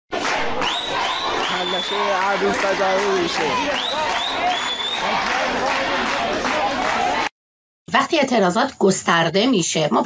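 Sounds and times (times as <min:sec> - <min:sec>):
loud crowd shouting and roaring: 0:00.1 - 0:07.3
speech: 0:01.9 - 0:05.3, 0:08.1 - 0:10.0.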